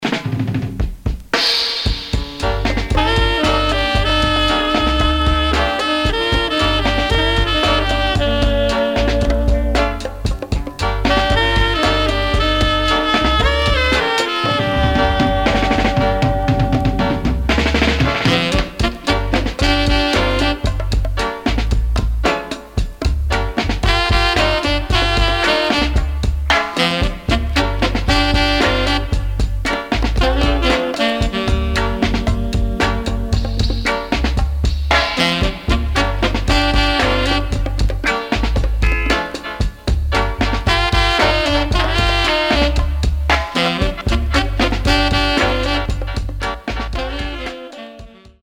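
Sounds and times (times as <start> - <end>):
horns: 0.0 - 48.4.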